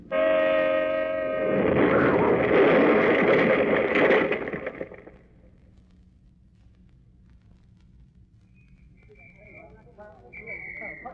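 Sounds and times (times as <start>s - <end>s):
car horn blaring: 0.1s - 1.5s
loud explosion: 1.4s - 5.2s.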